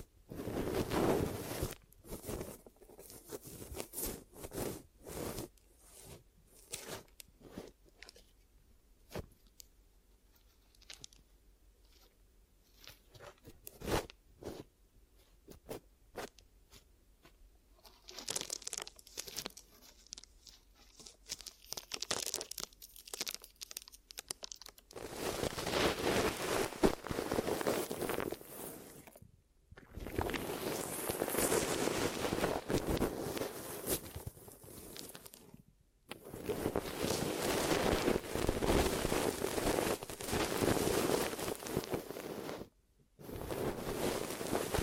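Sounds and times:
ear massage and cleaning: 0:00.0 - 0:07.9, 0:17.9 - 0:29.2, 0:29.8 - 0:35.4, 0:36.1 - 0:44.8.

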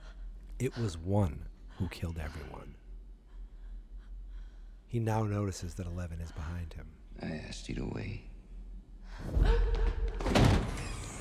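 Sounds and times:
speech: 0:00.6 - 0:02.8, 0:04.9 - 0:08.3, 0:09.1 - 0:10.4
door slammed shut by someone's powers: 0:10.2 - 0:11.1.

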